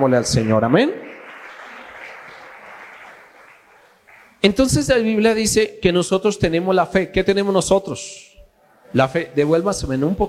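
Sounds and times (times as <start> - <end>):
speech: 0.0 - 1.0, 4.4 - 8.3, 8.9 - 10.2
church audience applause: 0.0 - 4.4.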